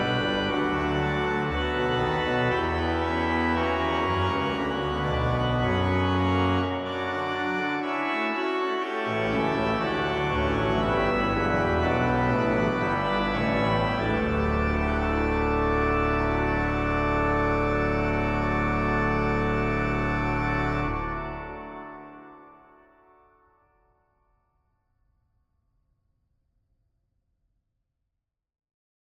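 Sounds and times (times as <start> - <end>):
pipe organ Rugwerk plenum: 0.0 - 22.8.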